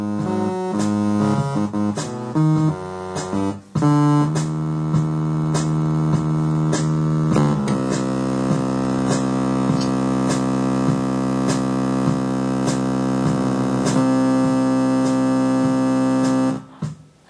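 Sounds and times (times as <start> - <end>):
sawtooth synth lead: 0.0 - 16.7.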